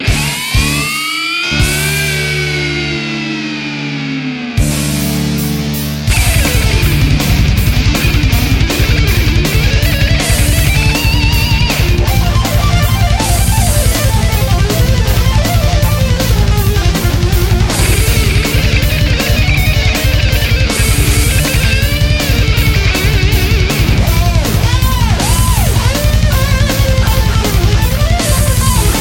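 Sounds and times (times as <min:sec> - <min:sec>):
fast rock music: 0:00.0 - 0:29.0.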